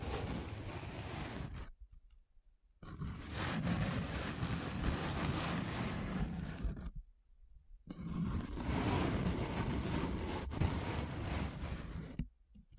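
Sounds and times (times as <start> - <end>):
paper being rubbed and scratched: 0.0 - 1.7, 2.8 - 6.9, 7.9 - 12.2.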